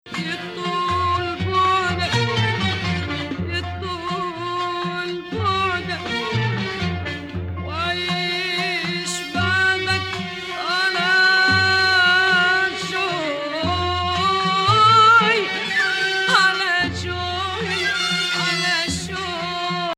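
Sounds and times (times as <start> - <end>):
Arabic maqam music in Sikah Beladi: 0.0 - 19.9.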